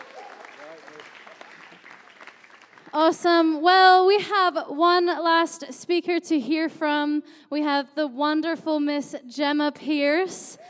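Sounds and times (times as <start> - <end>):
audience applause: 0.0 - 3.0
speech: 2.9 - 10.6.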